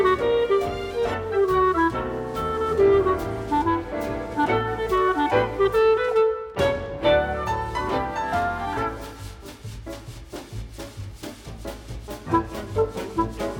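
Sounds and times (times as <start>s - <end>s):
clarinet: 0.0s - 9.5s, 12.2s - 13.5s.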